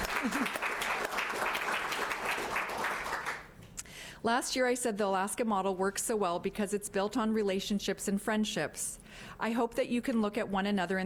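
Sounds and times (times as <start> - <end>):
audience applause: 0.0 - 3.5
speech: 0.2 - 0.6, 4.2 - 11.0.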